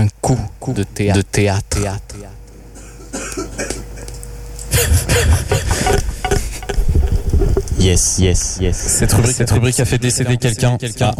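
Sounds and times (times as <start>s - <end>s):
speech: 0.3s - 2.2s, 7.8s - 11.1s
person choking: 4.8s - 6.8s.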